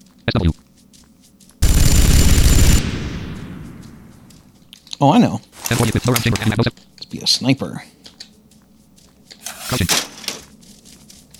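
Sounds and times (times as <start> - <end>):
speech: 0.3 - 0.6, 5.0 - 8.0, 9.7 - 10.1
minigun firing in a video game: 1.6 - 4.4.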